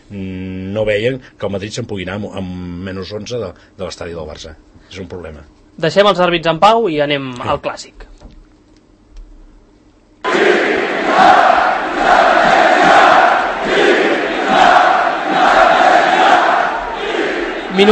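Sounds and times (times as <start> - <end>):
speech: 0.1 - 8.2
massive stadium crowd chanting for independence: 10.2 - 17.8.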